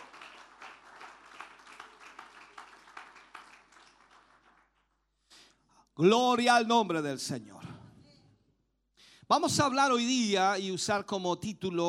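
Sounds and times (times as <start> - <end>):
audience applause: 0.0 - 4.8
speech: 6.0 - 7.6, 9.3 - 11.8.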